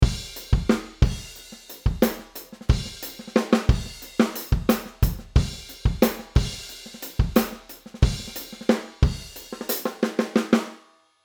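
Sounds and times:
drums: 0:00.0 - 0:11.0.

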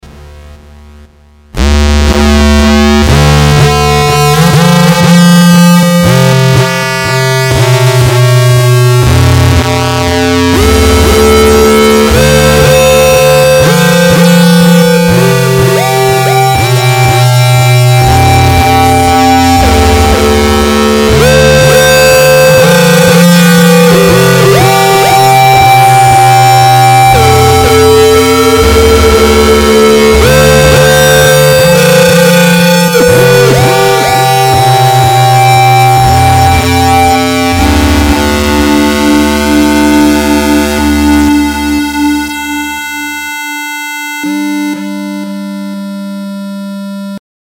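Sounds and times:
mono synth: 0:01.5 - 0:47.2.

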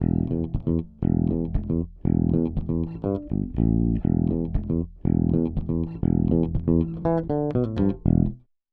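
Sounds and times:
bass: 0:00.0 - 0:08.5.

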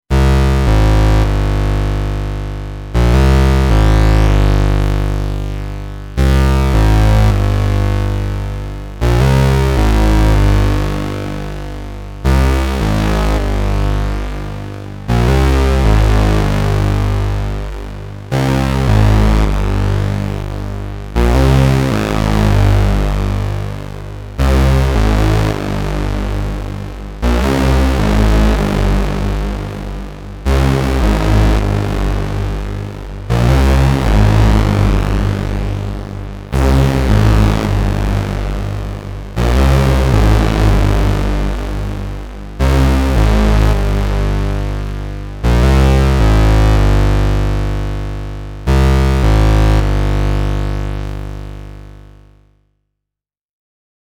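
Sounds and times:
pulse-width modulation synth: 0:00.1 - 0:51.9.

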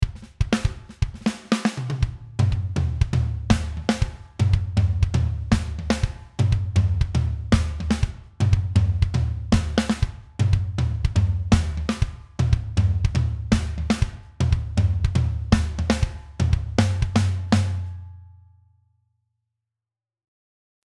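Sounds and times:
drums: 0:00.0 - 0:18.2.

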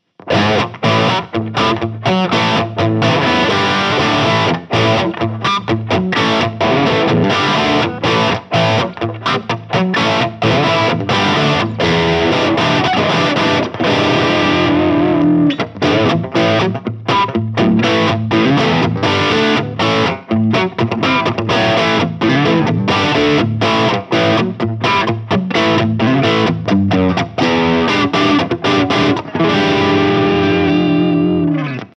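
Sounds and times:
LTD Vulture electric guitar with heavy crunch: 0:00.2 - 0:31.9.

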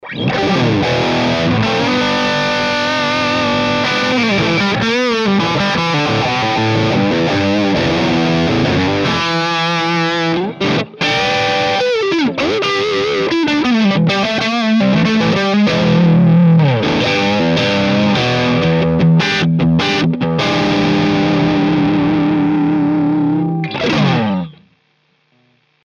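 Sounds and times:
digital guitar through Orange Rockerverb 50 MK II amplifier: 0:00.0 - 0:24.7.

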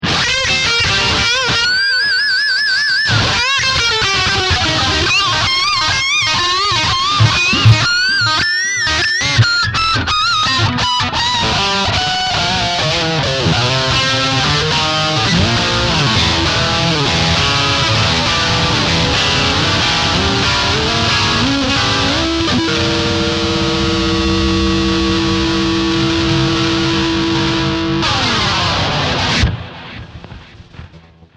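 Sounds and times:
harmonics lead: 0:00.6 - 0:10.8, 0:11.6 - 0:30.6.

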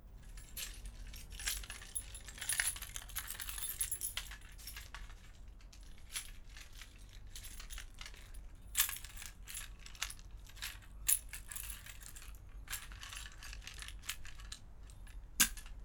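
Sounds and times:
bunch of keys: 0:00.1 - 0:15.7.

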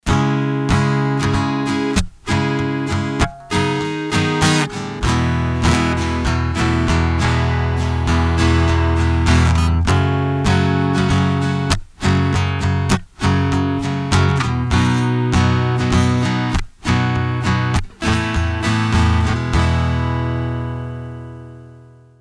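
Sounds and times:
strumming through piezo pickup: 0:00.0 - 0:22.1.

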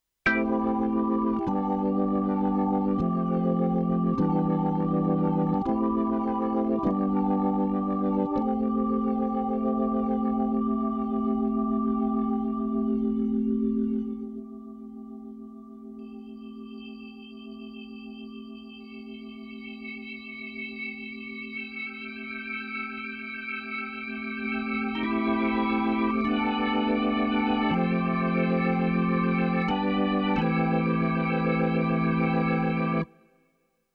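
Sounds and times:
BK9 organ drawbars: 0:00.3 - 0:16.2, 0:18.9 - 0:33.2.

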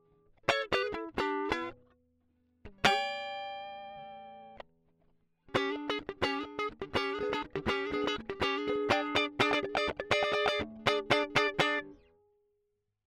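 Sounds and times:
funky guitar: 0:00.5 - 0:01.8, 0:05.5 - 0:12.1.

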